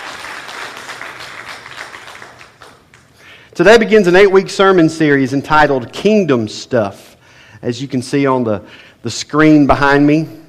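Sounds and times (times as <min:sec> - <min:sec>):
audience applauding: 0:00.0 - 0:03.2
speech: 0:03.6 - 0:07.0, 0:07.6 - 0:10.4.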